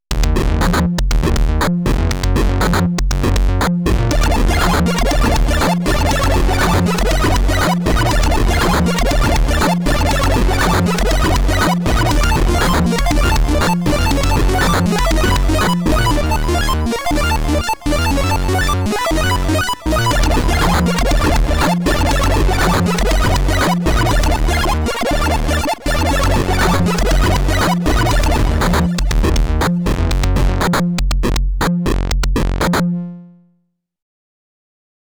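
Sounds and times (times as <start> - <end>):
chiptune music on Elektron Analog Rytm: 0.2 - 33.4.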